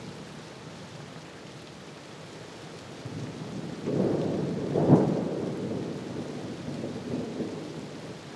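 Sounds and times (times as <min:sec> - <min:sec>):
thunderstorm: 0:03.1 - 0:08.2.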